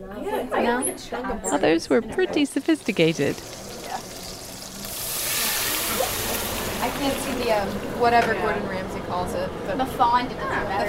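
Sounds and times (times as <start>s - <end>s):
speech: 0.0s - 3.7s, 7.0s - 10.8s
onions and meat sautéing in a pan: 2.2s - 8.2s.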